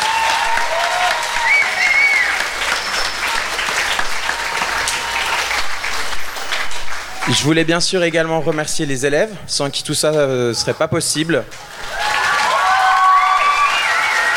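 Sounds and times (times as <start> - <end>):
audience applauding loudly: 0.0 - 9.4, 11.5 - 14.3
speech: 7.3 - 11.9.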